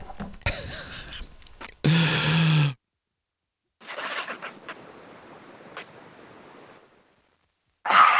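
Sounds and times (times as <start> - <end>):
person swigging a drink of water: 0.2 - 2.8
loud sighing exhale: 1.8 - 2.8.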